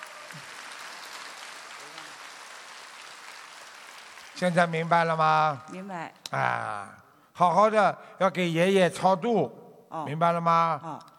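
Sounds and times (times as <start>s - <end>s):
applause: 0.0s - 5.6s
speech: 4.4s - 11.1s.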